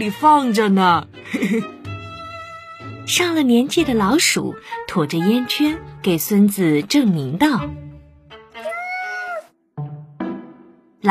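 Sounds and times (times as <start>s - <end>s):
speech: 0.0s - 1.8s, 3.1s - 7.9s
kitten meowing: 8.6s - 9.5s.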